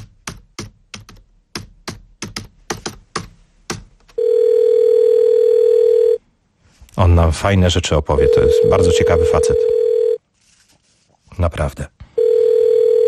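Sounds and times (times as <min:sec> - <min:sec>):
steady continuous telephone tone: 0:04.2 - 0:06.2, 0:08.2 - 0:10.2, 0:12.2 - 0:13.0
speech: 0:07.0 - 0:09.8, 0:11.4 - 0:12.0.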